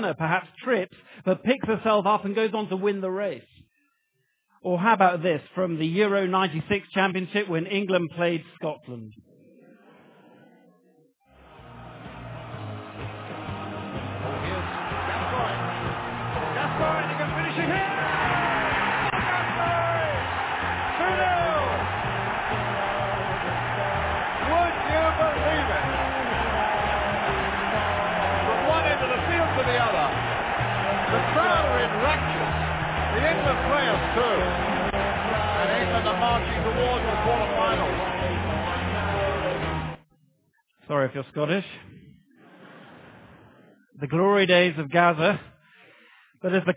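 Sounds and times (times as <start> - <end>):
speech: 0.0 - 3.6, 4.6 - 9.2, 40.9 - 42.0, 44.0 - 45.5, 46.4 - 46.7
football stadium crowd cheering: 11.4 - 40.0.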